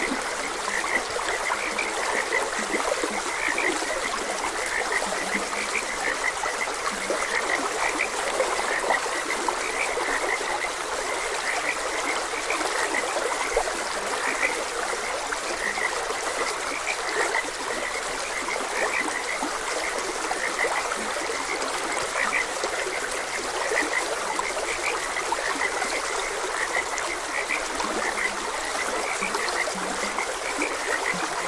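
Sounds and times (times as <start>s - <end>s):
frogs croaking: 0.0s - 31.4s
stream trickling: 0.0s - 31.4s.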